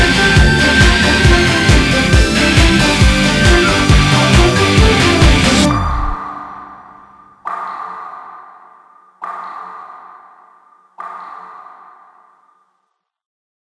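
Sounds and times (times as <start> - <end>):
music: 0.0 - 10.4.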